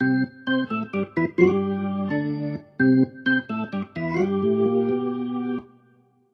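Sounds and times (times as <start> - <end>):
organ: 0.0 - 6.1.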